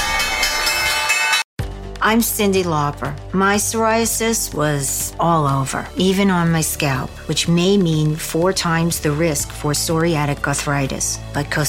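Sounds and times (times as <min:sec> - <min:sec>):
stock exchange closing bell ringing: 0:00.0 - 0:01.5
speech: 0:02.0 - 0:11.6.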